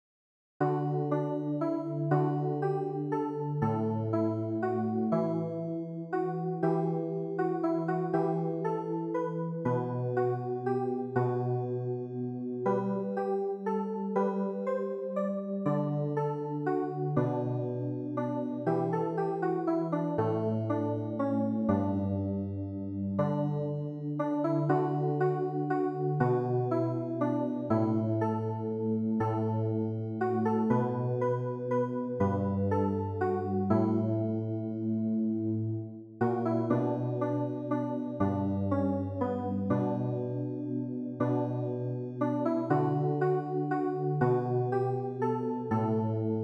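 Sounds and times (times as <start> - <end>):
keyboard: 0.6 - 46.4.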